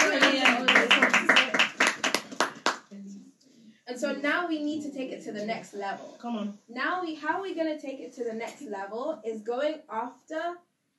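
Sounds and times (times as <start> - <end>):
audience applause: 0.0 - 2.8
speech: 4.0 - 10.9.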